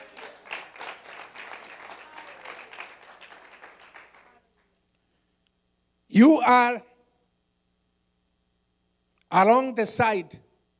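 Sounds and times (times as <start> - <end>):
audience clapping: 0.0 - 4.7
speech: 6.2 - 6.9, 9.3 - 10.5.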